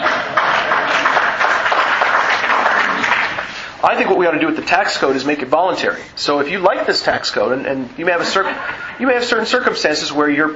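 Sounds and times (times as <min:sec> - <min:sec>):
audience applause: 0:00.0 - 0:03.6
speech: 0:03.8 - 0:10.5.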